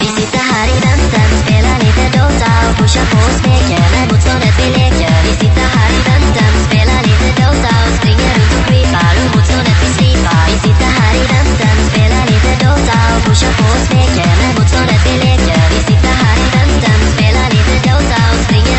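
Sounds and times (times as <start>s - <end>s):
music loop: 0.0s - 18.7s.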